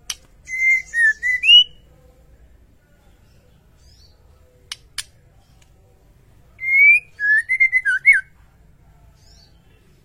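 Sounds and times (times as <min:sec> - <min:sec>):
white-rumped shama song: 0:00.4 - 0:01.8, 0:06.6 - 0:08.3.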